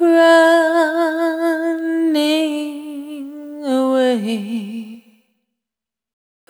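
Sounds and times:
single voice melodic loops: 0.0s - 5.1s.

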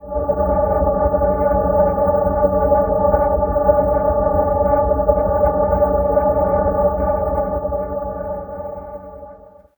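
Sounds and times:
ancient pillar drone in C: 0.0s - 9.7s.

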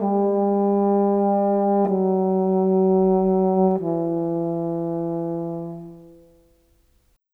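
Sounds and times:
orchestral horn: 0.0s - 6.7s.

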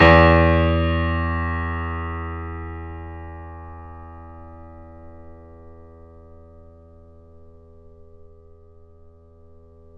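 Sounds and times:
grand piano E2 note played mezzo-forte: 0.0s - 5.6s.

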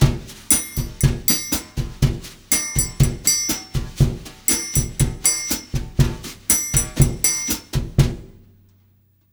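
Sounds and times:
Brazil bossa nova with brush drums at 120: 0.0s - 8.3s.

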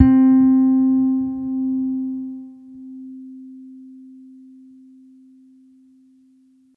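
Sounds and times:
soft electric string bass C4 note: 0.0s - 2.3s.

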